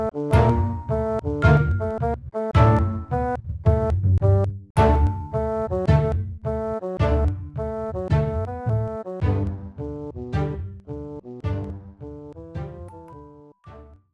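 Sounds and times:
cinematic music: 0.0s - 3.9s, 4.8s - 9.8s, 11.4s - 13.1s.

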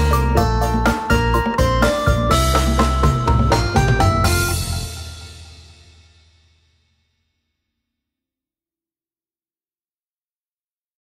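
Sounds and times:
pause menu music: 0.0s - 5.9s.

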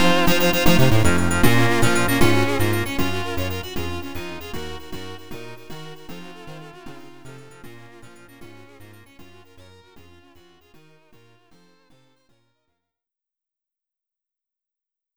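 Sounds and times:
background music on a YM2203 sound chip: 0.0s - 12.0s.

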